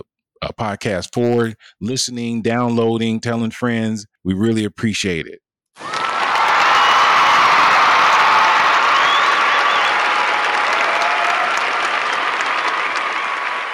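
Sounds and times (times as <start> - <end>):
speech: 0.0 - 6.0
faint cheers: 5.8 - 13.7
large crowd applauding: 5.8 - 13.7.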